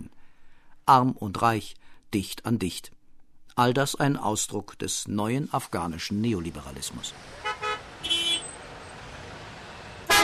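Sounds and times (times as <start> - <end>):
speech: 0.9 - 3.0, 3.6 - 7.5
steady rumble of street traffic in a city in Afghanistan: 5.5 - 10.2
car horns honking in a city in Afghanistan: 7.3 - 9.1, 9.9 - 10.2.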